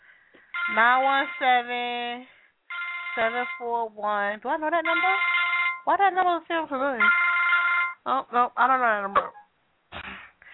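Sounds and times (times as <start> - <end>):
phone ringing: 0.5 - 1.9, 2.7 - 3.8, 4.8 - 5.9, 7.0 - 8.0
speech: 0.7 - 2.4, 3.2 - 7.2, 8.0 - 9.3.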